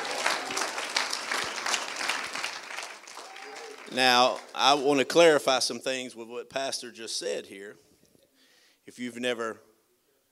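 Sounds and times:
audience clapping hands: 0.0 - 5.3
speech: 3.9 - 7.9, 8.9 - 9.7.

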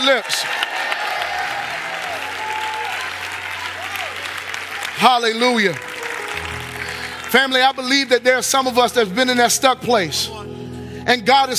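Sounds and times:
speech: 0.0 - 0.6, 5.0 - 6.6, 7.3 - 11.5
audience hand clapping: 0.0 - 8.6.

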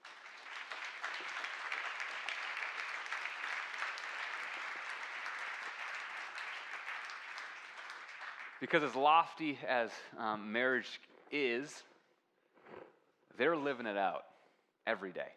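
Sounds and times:
audience applauding: 0.0 - 9.5
speech: 8.6 - 11.9, 13.4 - 14.3, 14.9 - 15.3.

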